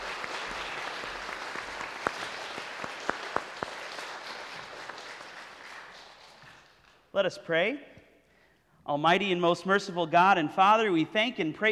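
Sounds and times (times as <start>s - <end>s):
audience applause: 0.0s - 7.0s
speech: 7.2s - 8.0s, 8.9s - 11.6s.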